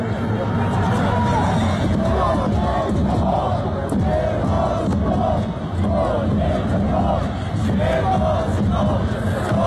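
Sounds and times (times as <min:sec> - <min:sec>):
football fans chanting in stands: 0:00.0 - 0:09.6.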